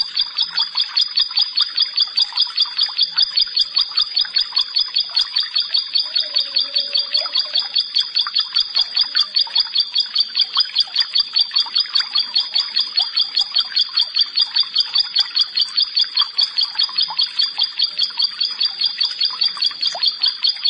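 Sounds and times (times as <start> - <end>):
background bird chatter: 0.0 - 20.6.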